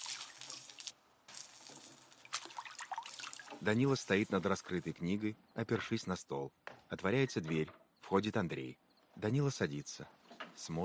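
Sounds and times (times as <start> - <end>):
water scooped by hand from a tub and splashed over the head: 0.0 - 4.7
speech: 3.6 - 10.8.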